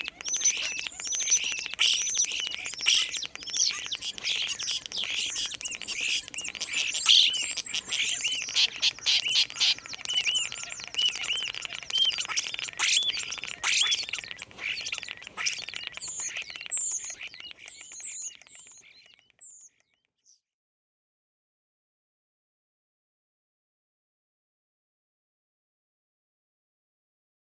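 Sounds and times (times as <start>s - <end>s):
common starling singing: 0.0s - 19.7s.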